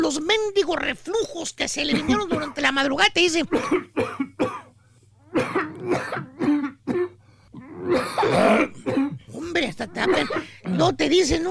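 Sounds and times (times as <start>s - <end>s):
speech: 0.1s - 4.3s, 8.1s - 9.0s, 9.6s - 11.5s
voice imitating harsh barking cough: 1.8s - 2.7s, 3.4s - 4.7s, 5.3s - 11.0s
strained throat-clearing rasp: 3.5s - 11.0s.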